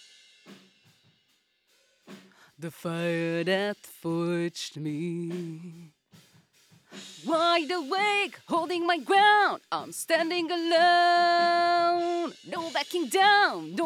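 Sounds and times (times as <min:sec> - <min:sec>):
vocals: 0:02.4 - 0:06.1, 0:06.9 - 0:13.8.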